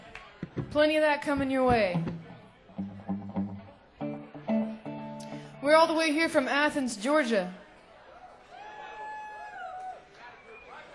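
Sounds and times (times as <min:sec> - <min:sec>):
speech: 0:00.7 - 0:02.2, 0:05.6 - 0:07.6
audience applause and cheering: 0:08.4 - 0:10.8
sustained whistle: 0:10.3 - 0:10.8.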